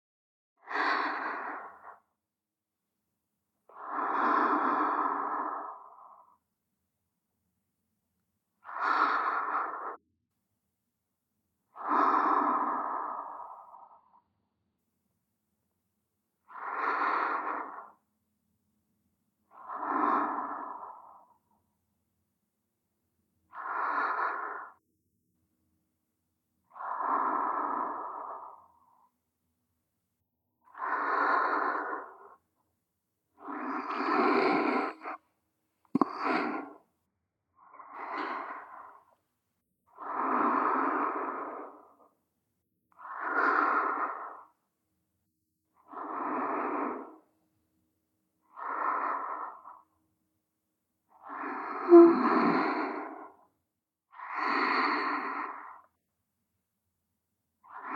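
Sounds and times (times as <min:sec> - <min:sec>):
girlfriend breathing in sleep: 0:00.6 - 0:02.2, 0:03.6 - 0:06.6, 0:08.6 - 0:10.0, 0:11.7 - 0:14.3, 0:16.2 - 0:18.1, 0:19.4 - 0:21.6, 0:23.5 - 0:24.8, 0:26.6 - 0:29.2, 0:30.6 - 0:32.6, 0:33.3 - 0:35.2, 0:35.9 - 0:36.9, 0:37.6 - 0:39.3, 0:39.9 - 0:42.3, 0:42.9 - 0:44.8, 0:45.7 - 0:47.4, 0:48.4 - 0:50.0, 0:51.0 - 0:56.1, 0:57.5 - 0:57.9.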